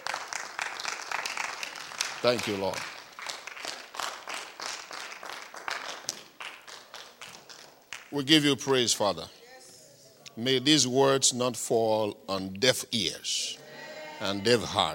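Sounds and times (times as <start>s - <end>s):
audience clapping: 0.0s - 8.8s
speech: 2.2s - 2.9s, 8.1s - 9.4s, 10.4s - 13.6s, 14.2s - 14.9s.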